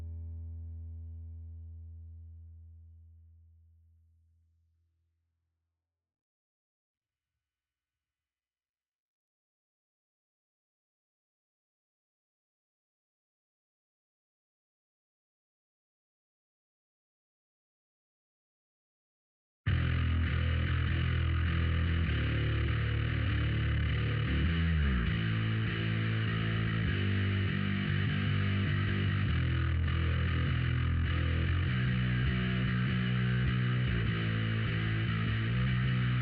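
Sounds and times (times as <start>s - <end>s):
bass: 0.0s - 5.0s, 19.7s - 36.2s.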